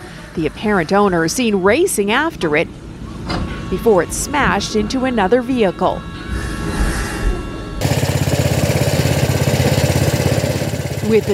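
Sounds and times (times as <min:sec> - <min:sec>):
speech: 0:00.4 - 0:06.8, 0:11.1 - 0:11.3
snowblower engine running: 0:07.8 - 0:11.3.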